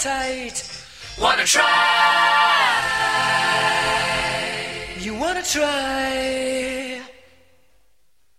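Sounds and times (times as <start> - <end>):
a cappella singing: 1.2 - 7.5.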